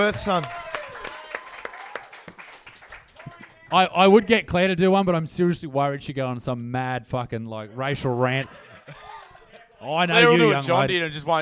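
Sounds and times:
speech: 0.0s - 0.6s, 3.7s - 9.0s, 9.8s - 11.4s
audience applause: 0.0s - 3.7s
laughter: 7.8s - 10.8s.

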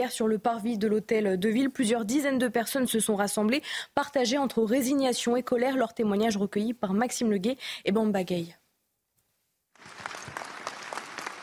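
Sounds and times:
speech: 0.0s - 8.6s
applause at a rally: 9.8s - 11.4s.

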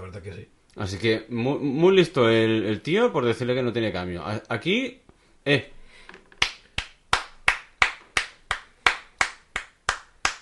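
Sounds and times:
speech: 0.1s - 5.8s
applause: 6.4s - 10.4s.

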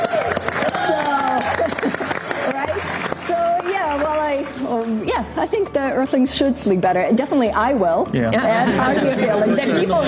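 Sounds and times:
people calling out and cheering: 0.0s - 2.6s
crowd clapping: 0.0s - 5.1s
speech: 5.4s - 10.0s.

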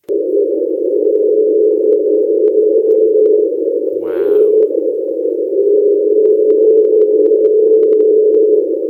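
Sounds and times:
unidentified underwater noise nicknamed the train: 0.0s - 8.8s.

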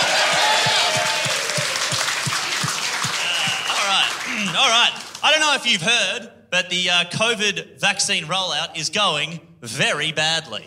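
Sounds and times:
audience applause: 0.0s - 5.3s
laughter: 2.2s - 4.7s
speech: 5.3s - 10.6s.

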